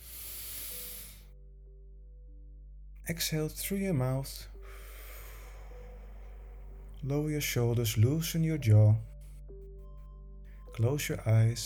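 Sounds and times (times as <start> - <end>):
deep inhale through the nose during a guided breathing exercise: 0.0 - 1.3, 4.6 - 6.2
low hum: 0.0 - 11.6
speech: 3.1 - 4.5, 7.0 - 9.1, 10.8 - 11.6.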